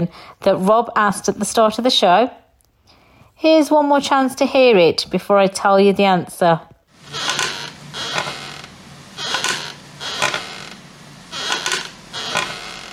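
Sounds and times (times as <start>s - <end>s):
speech: 0.0s - 2.4s, 3.4s - 7.4s
wooden rocking chair creaking: 6.9s - 12.9s.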